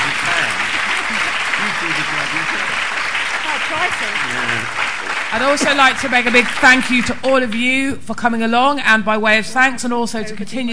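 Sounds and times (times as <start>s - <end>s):
audience applause: 0.0s - 7.6s
speech: 3.7s - 10.7s.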